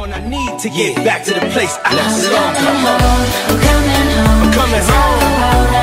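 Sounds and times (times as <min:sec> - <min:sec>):
English ringtone: 0:00.3 - 0:05.7.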